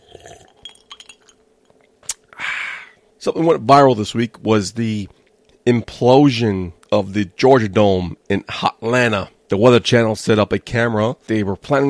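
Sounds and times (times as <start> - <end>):
ceramic mug clinking while drinking: 0.2 - 1.4
speech: 3.2 - 11.8.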